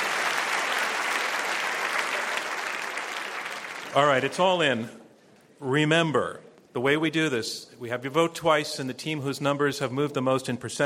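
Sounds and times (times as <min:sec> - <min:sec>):
large audience applause for debaters: 0:00.0 - 0:04.4
speech: 0:03.9 - 0:05.0, 0:05.6 - 0:10.8.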